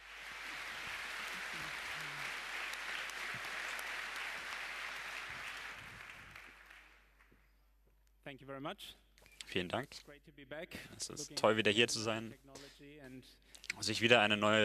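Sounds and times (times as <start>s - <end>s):
audience applause: 0.0s - 7.1s
speech: 8.3s - 14.6s.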